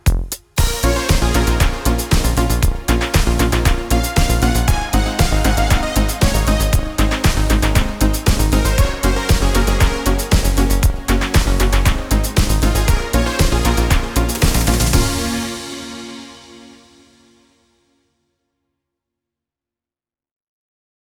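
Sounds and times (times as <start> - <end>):
disco music: 0.0 - 16.5.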